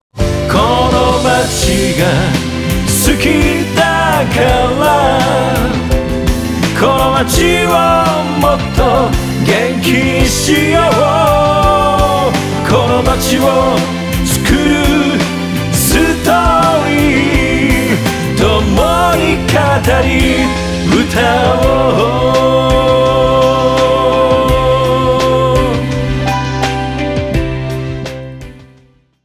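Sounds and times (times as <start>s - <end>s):
short eight-beat song: 0.2s - 28.8s.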